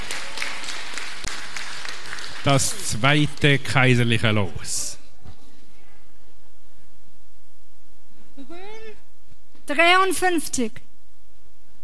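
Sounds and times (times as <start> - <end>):
crowd applauding for the winner: 0.0 - 4.2
speech: 2.4 - 4.9, 9.8 - 10.8.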